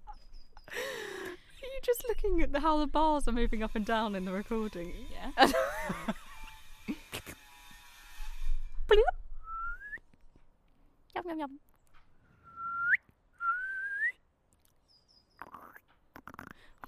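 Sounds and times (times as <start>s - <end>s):
speech: 1.9s - 6.2s, 8.9s - 9.2s, 11.3s - 11.7s
laughter: 5.4s - 7.4s
clicky mouth noises: 12.5s - 16.8s
person imitating a frog with their voice: 15.4s - 16.8s.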